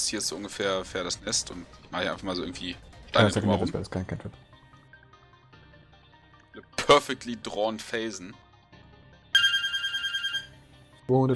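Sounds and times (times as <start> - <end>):
speech: 0.0 - 4.4, 6.6 - 8.4, 11.1 - 11.3
bell ringing: 9.4 - 10.6.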